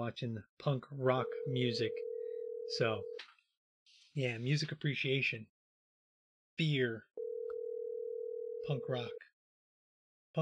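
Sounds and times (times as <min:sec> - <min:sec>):
speech: 0:00.0 - 0:02.1, 0:02.7 - 0:03.3, 0:03.9 - 0:05.6, 0:06.6 - 0:07.1, 0:08.6 - 0:09.3
telephone dial tone while a call is placed: 0:01.3 - 0:02.8, 0:07.2 - 0:08.8.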